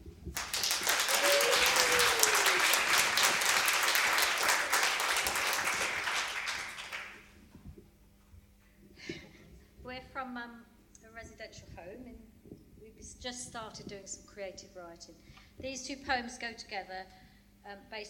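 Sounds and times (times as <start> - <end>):
audience applause: 0.3 - 7.3
speech: 13.7 - 18.0.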